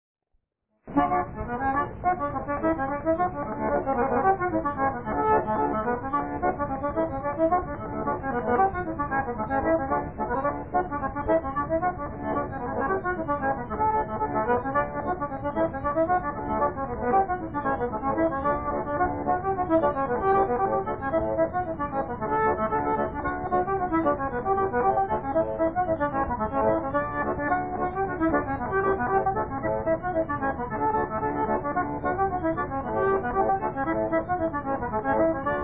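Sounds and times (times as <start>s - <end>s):
accordion: 0.9s - 35.6s.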